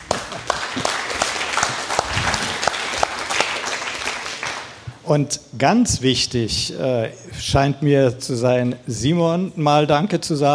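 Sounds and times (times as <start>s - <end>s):
audience applause: 0.0s - 4.9s
speech: 5.1s - 10.5s.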